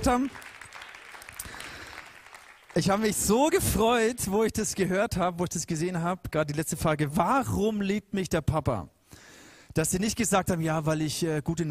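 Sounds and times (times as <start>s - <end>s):
speech: 0.0s - 0.6s, 2.8s - 9.0s, 9.7s - 11.6s
applause: 0.0s - 3.8s.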